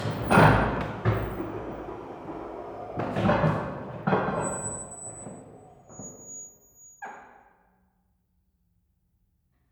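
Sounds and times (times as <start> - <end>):
electric belt drive laundry mangle running: 0.0 - 5.7.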